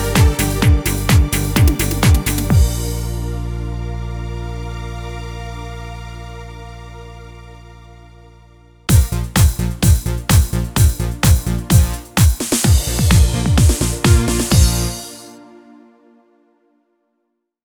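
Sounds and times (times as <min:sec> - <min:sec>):
schlager dance music: 0:00.0 - 0:03.6, 0:08.9 - 0:15.4.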